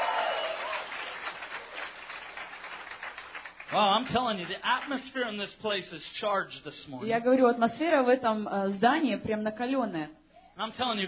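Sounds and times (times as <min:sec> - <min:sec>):
audience clapping: 0:00.0 - 0:05.6
speech: 0:03.7 - 0:11.0.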